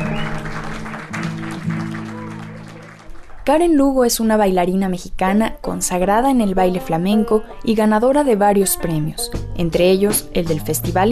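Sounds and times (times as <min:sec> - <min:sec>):
audience applause after a dance performance: 0:00.0 - 0:03.5
speech: 0:03.5 - 0:11.1.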